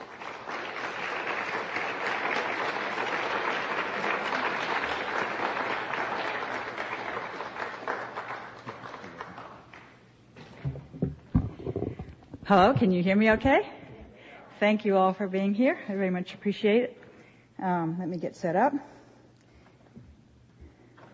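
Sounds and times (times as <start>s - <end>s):
audience applause: 0.0s - 9.8s
scattered thumps and taps: 10.6s - 12.9s
speech: 12.5s - 13.7s, 14.6s - 17.0s, 17.6s - 19.0s.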